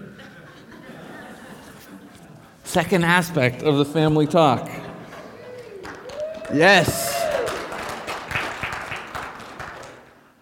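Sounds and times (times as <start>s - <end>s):
laughter: 0.0s - 2.6s
speech: 2.7s - 4.8s, 6.5s - 7.1s
audience clapping: 4.9s - 10.4s.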